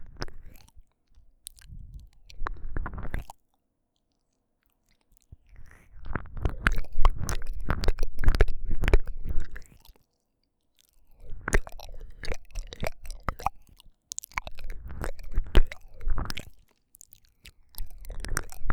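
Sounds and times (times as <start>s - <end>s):
ear licking: 6.1s - 10.0s, 11.3s - 18.7s.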